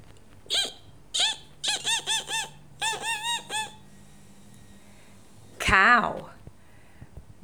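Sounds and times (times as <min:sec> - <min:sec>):
mouse squeaks: 0:00.5 - 0:03.8
speech: 0:05.7 - 0:06.4.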